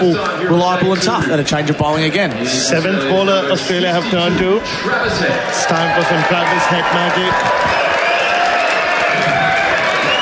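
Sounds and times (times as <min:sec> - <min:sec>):
speech: 0:00.0 - 0:07.8
cricket crowd cheering as Australia bring on Travis Head to bowl: 0:04.7 - 0:10.2.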